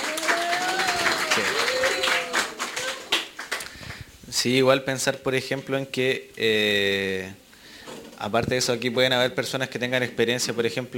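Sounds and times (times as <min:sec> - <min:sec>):
audience applause: 0:00.0 - 0:04.0
speech: 0:04.4 - 0:07.4, 0:08.2 - 0:10.9.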